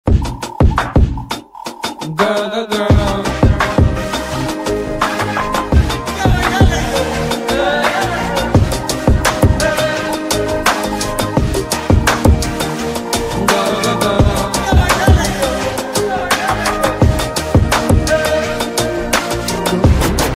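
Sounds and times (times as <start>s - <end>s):
Tamil background music: 0.0s - 20.3s.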